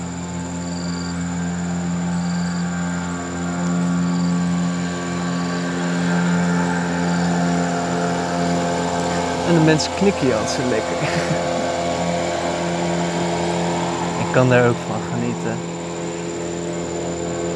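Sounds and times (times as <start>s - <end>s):
boat engine droning: 0.0s - 17.5s
laughter: 9.1s - 12.6s
speech: 9.5s - 11.6s, 14.3s - 15.7s.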